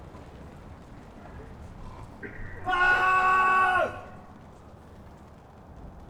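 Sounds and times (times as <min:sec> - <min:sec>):
ambience: 0:01.2 - 0:04.9.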